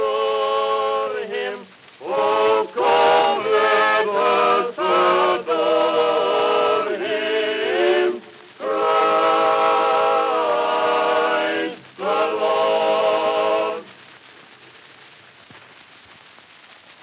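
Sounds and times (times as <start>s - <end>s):
Christmas carol: 0.0s - 14.2s.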